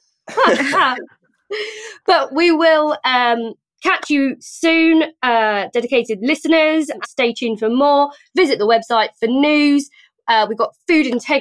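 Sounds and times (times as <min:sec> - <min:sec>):
throat clearing: 0:00.3 - 0:01.0
speech: 0:00.4 - 0:11.3.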